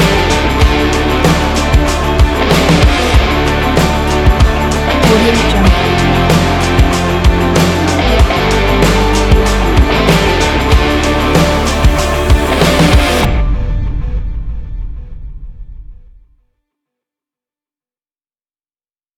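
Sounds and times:
stylish victory sport rock music: 0.0s - 13.3s.

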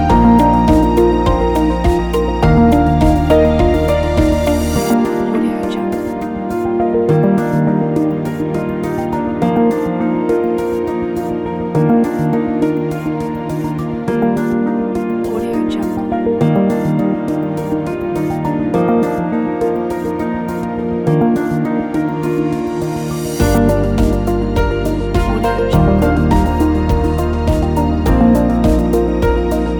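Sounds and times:
uplifting corporate medical science music: 0.0s - 29.7s.

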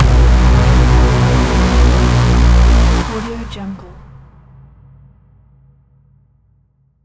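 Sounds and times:
braaam strike: 0.0s - 4.6s.

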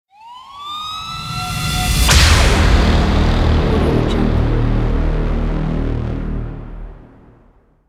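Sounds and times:
crime thriller logo music: 0.7s - 7.8s.

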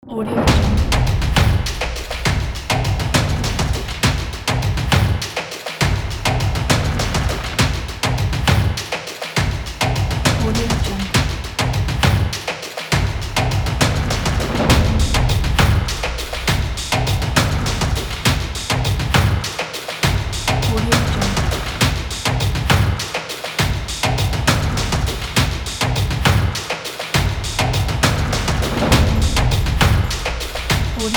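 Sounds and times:
tribal music: 0.0s - 31.1s.

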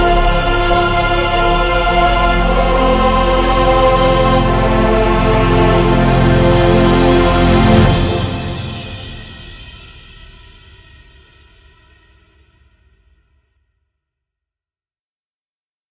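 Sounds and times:
cinematic majestic powerful music: 0.0s - 10.0s.

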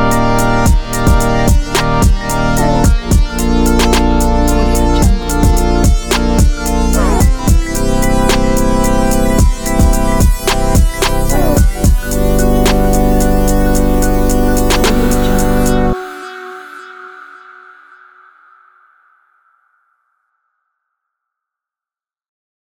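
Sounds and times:
abstract chill hip hop music: 0.0s - 17.6s.

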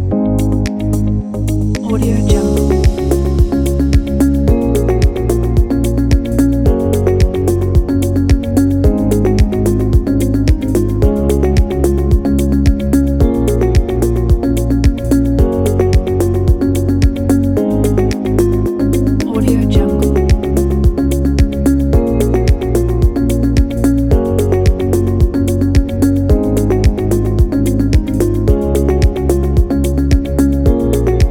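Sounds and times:
corporate ambient music: 0.0s - 31.3s.

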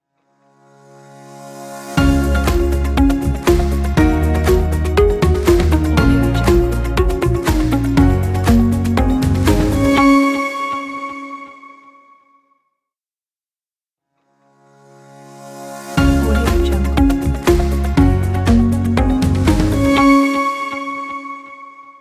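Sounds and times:
upbeat inspiring corporate ident music: 2.0s - 11.8s, 15.8s - 21.9s.

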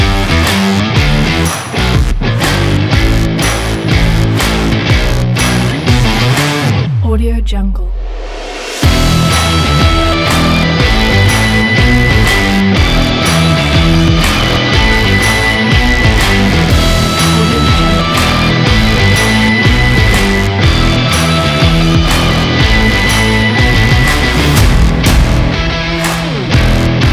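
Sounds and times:
sport promo rock music: 0.0s - 7.0s, 8.1s - 27.1s.

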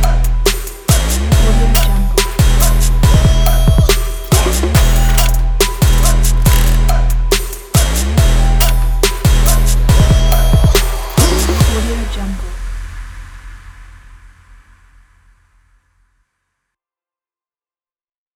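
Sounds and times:
rap music: 0.0s - 14.2s.

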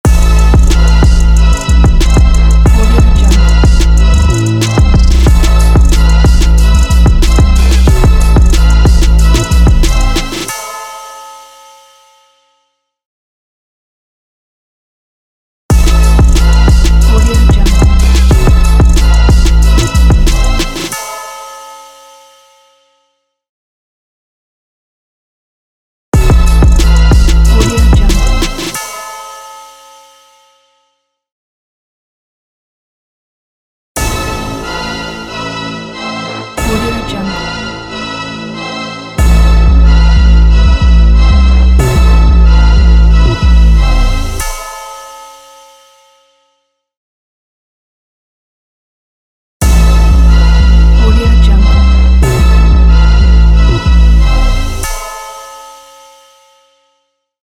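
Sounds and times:
epic sporting trap logo: 0.1s - 10.8s, 15.7s - 21.2s, 26.2s - 29.2s, 34.0s - 44.9s, 49.6s - 55.7s.

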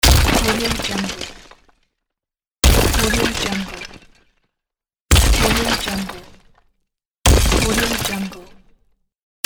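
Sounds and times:
ice crashing: 0.0s - 1.7s, 2.6s - 4.1s, 5.1s - 6.4s, 7.3s - 8.3s.

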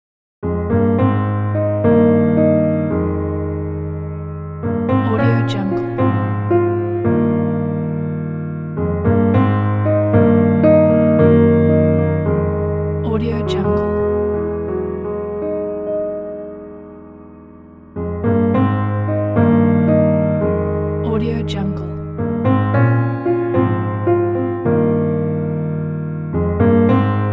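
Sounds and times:
romantic piano theme: 0.4s - 27.3s.

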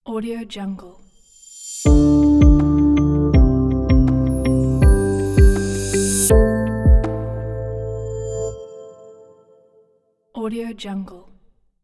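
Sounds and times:
smooth intro logo sound: 1.6s - 9.5s.

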